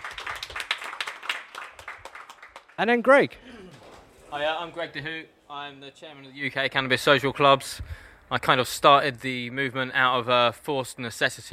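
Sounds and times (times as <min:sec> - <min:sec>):
round of applause: 0:00.0 - 0:03.0
speech: 0:02.8 - 0:03.6, 0:04.3 - 0:11.5.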